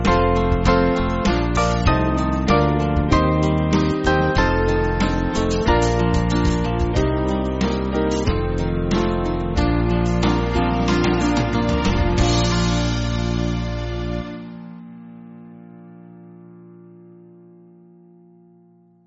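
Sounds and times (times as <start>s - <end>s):
band backing track for churches: 0.0s - 14.8s.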